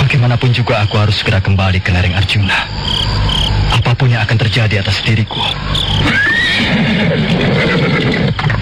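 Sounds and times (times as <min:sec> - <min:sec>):
speech: 0:00.1 - 0:08.4
horse whinnying: 0:06.0 - 0:08.5.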